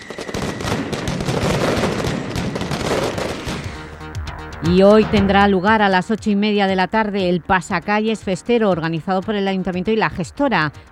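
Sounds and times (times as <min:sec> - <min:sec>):
rapid fireworks bursts from a 30-metre tower of single-shot charges: 0:00.0 - 0:06.4
speech: 0:04.6 - 0:10.9.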